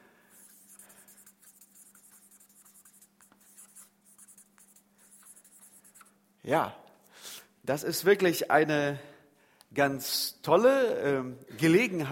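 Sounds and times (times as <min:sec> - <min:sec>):
pen handwriting scratching strokes: 0:00.4 - 0:06.1
speech: 0:06.5 - 0:06.8, 0:07.7 - 0:09.1, 0:09.7 - 0:12.1.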